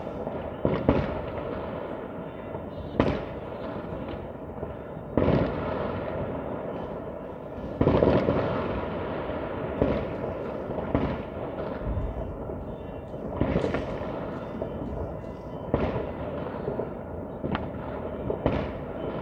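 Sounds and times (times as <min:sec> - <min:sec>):
New Year's Eve fireworks bangs and crackling bursts: 0:00.0 - 0:19.2
rumble of fireworks explosions: 0:00.0 - 0:19.2.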